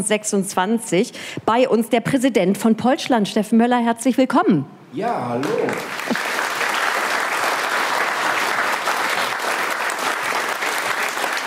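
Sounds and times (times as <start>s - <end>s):
speech: 0.0s - 6.2s
audience applause: 5.4s - 11.4s.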